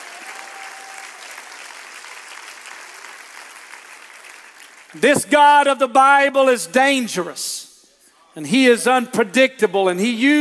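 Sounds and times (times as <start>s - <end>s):
audience clapping: 0.0s - 5.2s
speech: 4.9s - 7.6s, 8.4s - 10.3s.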